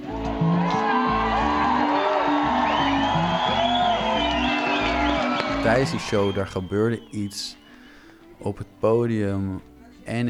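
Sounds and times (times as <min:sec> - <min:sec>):
packed festival tent crowd cheering and whooping: 0:00.0 - 0:08.1
speech: 0:05.6 - 0:07.6, 0:08.4 - 0:10.2.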